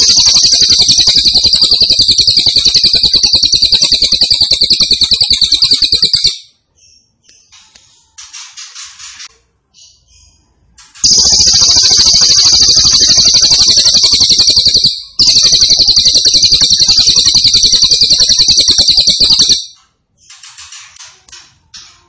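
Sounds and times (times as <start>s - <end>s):
grey-cheeked tit-babbler singing buzzing trills: 0.0s - 6.2s, 11.0s - 19.6s.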